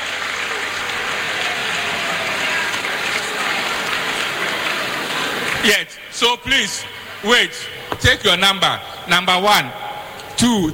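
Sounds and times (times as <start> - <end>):
audience applause: 0.0 - 6.0
speech: 5.6 - 9.8, 10.4 - 10.7.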